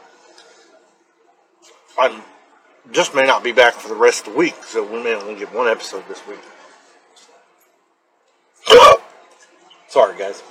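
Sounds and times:
speech: 2.0s - 6.6s, 10.0s - 10.4s
hiccups: 8.6s - 9.1s.

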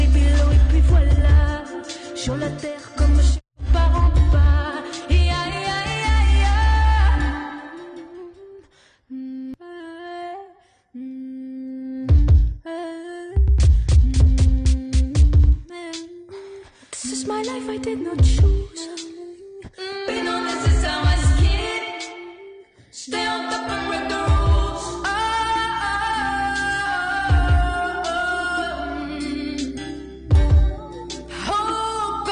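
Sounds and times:
sustained chords and deep bass: 0.0s - 1.6s, 3.0s - 7.4s, 20.7s - 21.7s, 24.2s - 26.3s, 27.3s - 28.0s, 28.6s - 32.2s
woman singing a slow solo cover of a hip-hop song live from her home: 0.0s - 32.3s.

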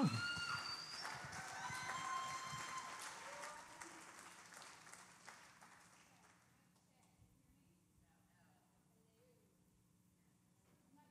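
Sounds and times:
audience applause welcoming a speaker's wife to the stage: 0.0s - 6.4s.

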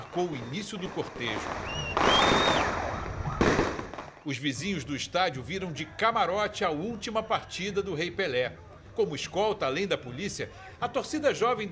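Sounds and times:
fireworks bursting: 0.0s - 4.2s
speech: 0.2s - 2.5s, 4.2s - 11.7s.

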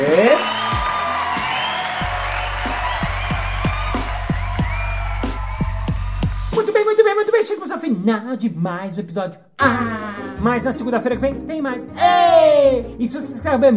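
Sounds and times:
audience applause and cheering: 0.0s - 6.6s
speech: 7.4s - 13.7s.

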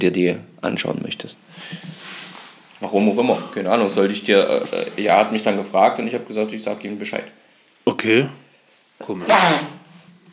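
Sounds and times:
speech: 0.0s - 2.0s, 2.8s - 8.4s, 9.0s - 9.8s
sneeze: 9.2s - 9.9s.

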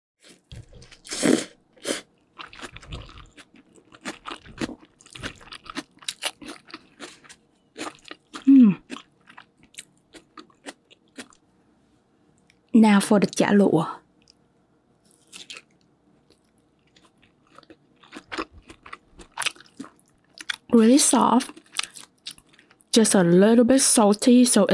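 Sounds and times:
crunchy biting and chewing of steamed rice roll from a to-go box: 0.2s - 11.4s, 15.0s - 20.6s
speech: 12.8s - 14.0s, 20.8s - 21.6s, 23.0s - 24.7s.

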